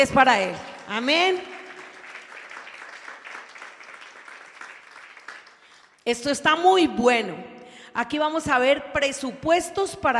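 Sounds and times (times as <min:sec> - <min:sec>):
speech: 0:00.0 - 0:01.5, 0:06.1 - 0:10.1
audience applause: 0:00.6 - 0:06.0.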